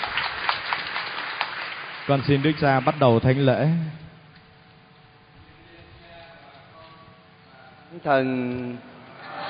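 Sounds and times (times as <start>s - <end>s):
audience applauding: 0.0s - 3.5s
speech: 2.1s - 4.0s, 8.0s - 8.9s.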